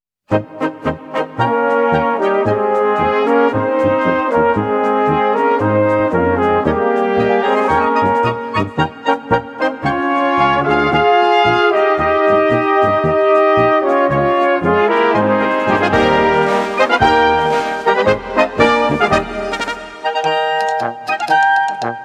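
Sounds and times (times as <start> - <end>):
brass band music: 0.3 - 22.0.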